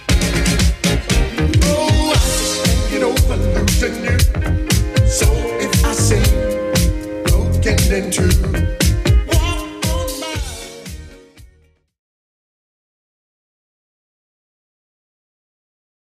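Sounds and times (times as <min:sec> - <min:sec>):
1980s drum machine beat at 117 bpm: 0:00.0 - 0:11.6.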